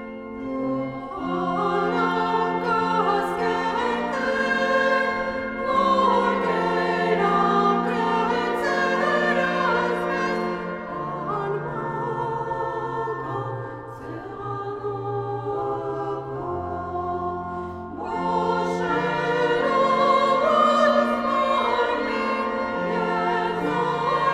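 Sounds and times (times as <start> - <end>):
Armenian mass singing: 0.6 - 24.3.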